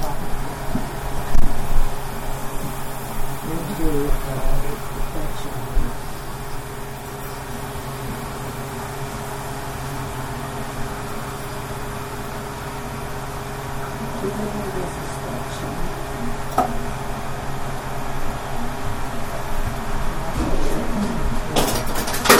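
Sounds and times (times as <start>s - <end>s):
electric fan running in a smoky kitchen: 0.0s - 22.3s
kitchen clattering: 20.3s - 22.3s.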